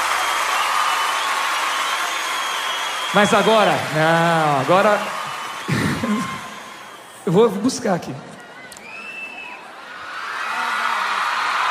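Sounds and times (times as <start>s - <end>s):
audience applause: 0.0s - 7.6s, 10.1s - 11.6s
speech: 3.1s - 5.2s, 7.3s - 8.3s.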